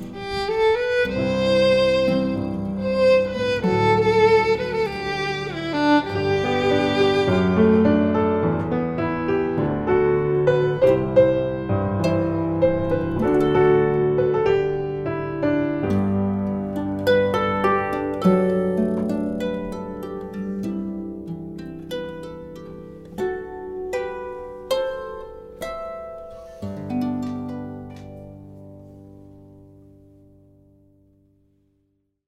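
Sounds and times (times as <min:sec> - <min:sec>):
violin harp and piano trio: 0:00.0 - 0:30.4.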